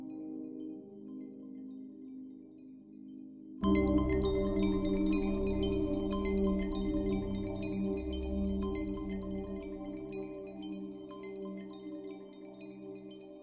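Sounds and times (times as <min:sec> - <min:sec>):
ambience: 0:03.6 - 0:10.8.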